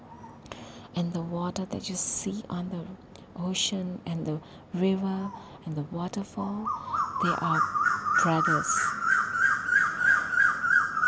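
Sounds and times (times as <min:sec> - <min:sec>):
speech: 0:01.0 - 0:09.0
bird calling: 0:06.6 - 0:11.0.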